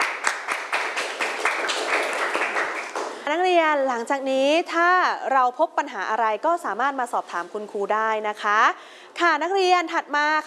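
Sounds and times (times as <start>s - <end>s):
group of students clapping hands: 0.0s - 3.2s
speech: 3.3s - 10.4s.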